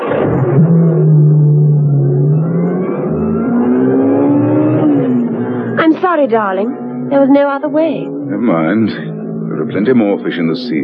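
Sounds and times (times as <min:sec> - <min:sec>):
sports car engine revving and driving off: 0:00.0 - 0:10.8
speech: 0:06.2 - 0:10.8.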